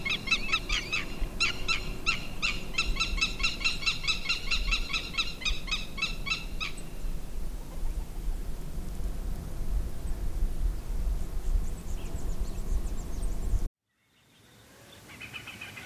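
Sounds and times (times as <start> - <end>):
lapwing: 0.0 - 13.7.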